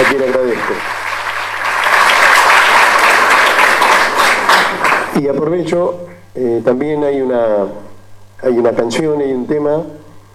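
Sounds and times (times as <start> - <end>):
loud applause for band director: 0.0 - 5.2
speech: 5.2 - 10.0.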